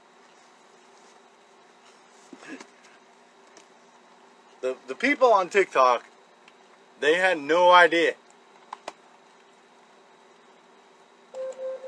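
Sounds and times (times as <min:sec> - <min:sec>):
speech: 0:04.6 - 0:06.1, 0:07.0 - 0:08.2
smart speaker timer alarm electronic tones: 0:11.3 - 0:11.8.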